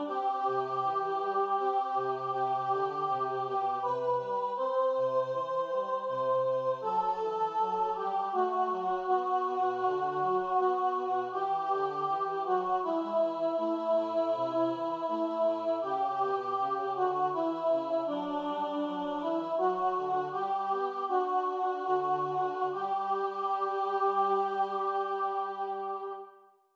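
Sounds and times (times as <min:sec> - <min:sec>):
choir singing alto over bass: 0:00.0 - 0:26.5.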